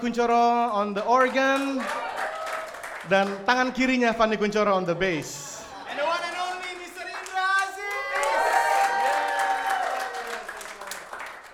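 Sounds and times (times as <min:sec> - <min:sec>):
speech: 0:00.0 - 0:02.1, 0:03.0 - 0:05.6
audience applauding and cheering for a musician: 0:01.1 - 0:03.7, 0:05.8 - 0:11.5.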